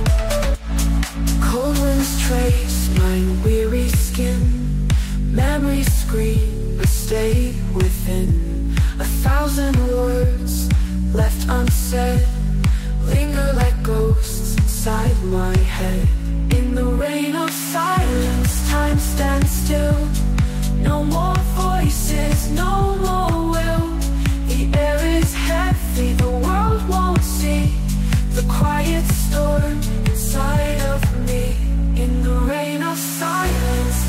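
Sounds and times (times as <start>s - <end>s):
atmospheric deep house and chillstep music: 0.0s - 34.0s.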